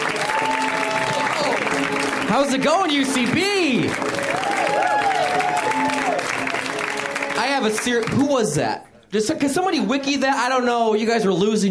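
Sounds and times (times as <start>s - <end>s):
audience round of applause: 0.0s - 8.5s
speech: 2.3s - 4.2s, 7.5s - 11.6s.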